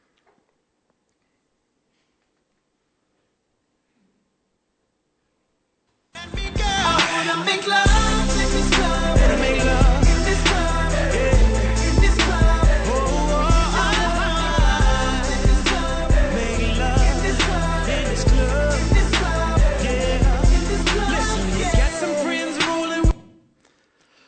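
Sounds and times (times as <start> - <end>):
pop song played from a recording: 6.2 - 23.4.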